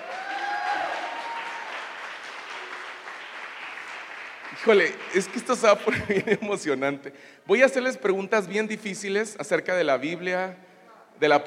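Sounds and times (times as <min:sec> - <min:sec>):
audience applause: 0:00.0 - 0:06.1
speech: 0:04.6 - 0:11.4
laughter: 0:05.6 - 0:06.6.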